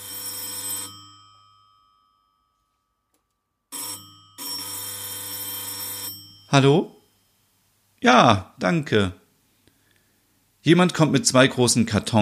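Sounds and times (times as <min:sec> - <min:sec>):
doorbell ringing: 0:00.0 - 0:07.4
speech: 0:06.5 - 0:07.0, 0:08.0 - 0:09.2, 0:10.6 - 0:12.2.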